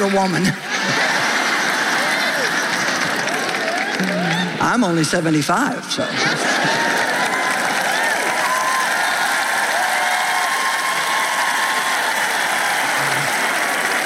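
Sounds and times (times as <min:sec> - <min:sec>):
speech: 0:00.0 - 0:01.1, 0:04.0 - 0:07.0
laughter: 0:00.0 - 0:04.7, 0:05.8 - 0:10.4, 0:12.2 - 0:14.0
audience clapping: 0:00.0 - 0:05.0, 0:06.2 - 0:14.0.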